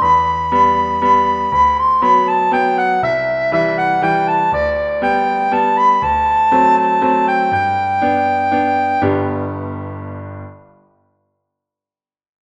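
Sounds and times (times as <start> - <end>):
soprano singing: 0.0 - 9.6.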